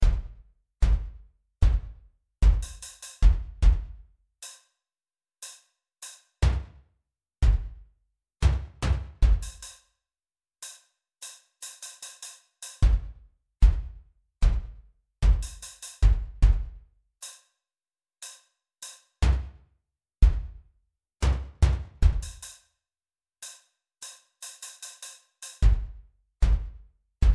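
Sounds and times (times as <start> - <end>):
drums: 0.0 - 4.6, 7.4 - 7.8, 8.4 - 9.8, 10.6 - 17.4, 20.2 - 20.6, 21.2 - 22.6, 23.4 - 27.3.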